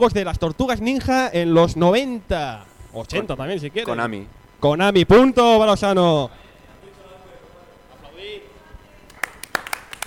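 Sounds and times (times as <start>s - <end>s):
speech: 0.0s - 6.4s
people clapping: 9.0s - 10.0s.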